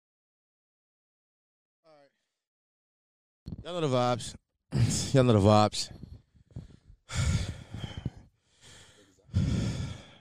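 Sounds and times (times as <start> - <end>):
speech: 3.6 - 6.0
heavy out-of-breath breathing: 5.9 - 10.1.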